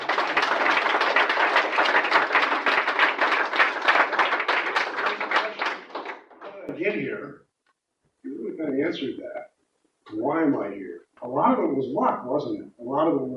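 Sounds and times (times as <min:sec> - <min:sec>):
crowd applause: 0:00.0 - 0:06.8
speech: 0:06.8 - 0:07.5, 0:08.2 - 0:09.4, 0:10.1 - 0:13.3.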